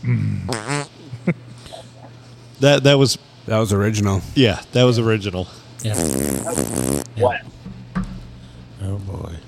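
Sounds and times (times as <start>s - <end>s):
speech: 0.0s - 2.0s, 2.6s - 7.6s
fart noises: 0.1s - 1.1s, 5.8s - 7.4s.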